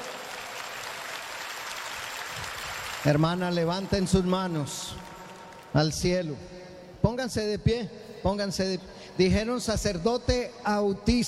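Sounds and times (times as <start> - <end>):
audience applause: 0.0 - 5.7
speech: 3.0 - 5.1, 5.7 - 11.2.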